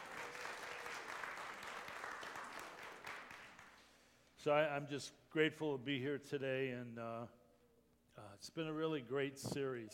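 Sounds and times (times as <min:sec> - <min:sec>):
audience applause: 0:00.0 - 0:03.8
speech: 0:04.4 - 0:07.4, 0:08.2 - 0:09.9.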